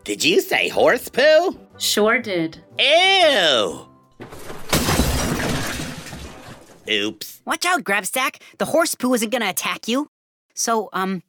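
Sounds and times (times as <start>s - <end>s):
speech: 0.1s - 4.6s, 6.9s - 11.2s
glass shattering sound effect: 4.2s - 6.9s.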